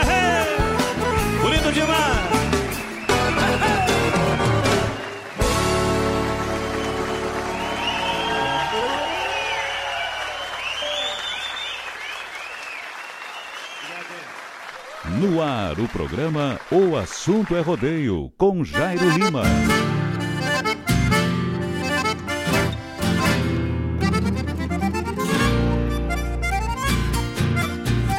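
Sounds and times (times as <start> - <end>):
loud music: 0.0 - 9.3, 18.8 - 28.1
audience applause: 2.4 - 18.2
speech: 15.5 - 19.9.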